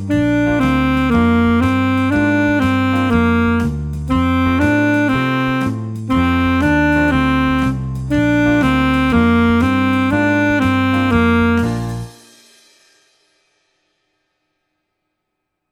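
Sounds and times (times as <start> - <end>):
saxophone: 0.0 - 12.2.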